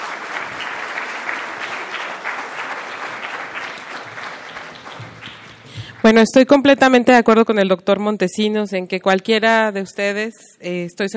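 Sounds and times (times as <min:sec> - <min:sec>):
audience applause: 0:00.0 - 0:06.2
speech: 0:06.0 - 0:11.1.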